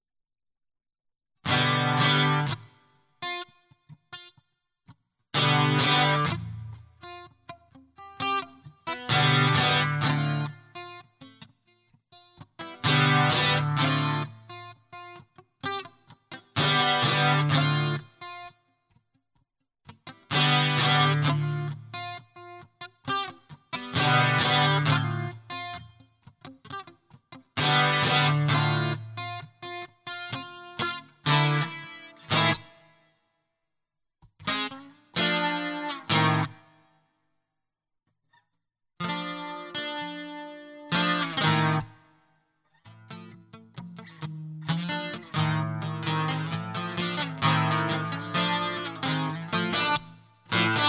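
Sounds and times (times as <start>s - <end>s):
guitar loop: 1.4s - 3.5s, 5.4s - 11.4s, 12.2s - 18.5s, 20.0s - 32.8s, 34.4s - 36.6s, 39.0s - 42.0s, 42.9s - 50.8s.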